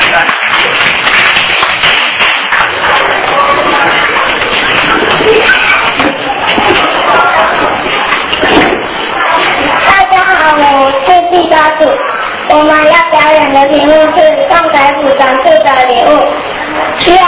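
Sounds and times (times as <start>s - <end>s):
group of people clapping their hands: 0.0s - 10.1s
voices: 2.5s - 17.2s.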